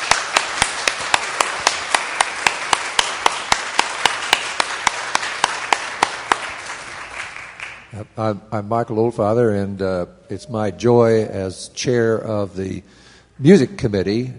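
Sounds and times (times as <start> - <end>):
audience applause: 0.0 - 7.9
speech: 8.2 - 14.3.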